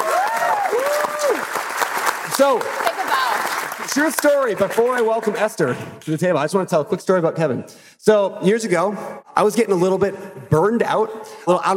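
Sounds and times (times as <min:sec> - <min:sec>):
cheering whoops: 0:00.0 - 0:01.7, 0:02.8 - 0:03.6
audience clapping: 0:00.0 - 0:05.7
speech: 0:02.4 - 0:11.7.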